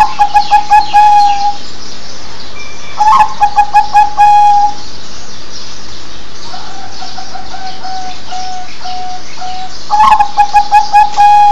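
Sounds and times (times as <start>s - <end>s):
zebra dove cooing: 0.0s - 1.6s, 3.0s - 4.8s, 6.5s - 11.5s.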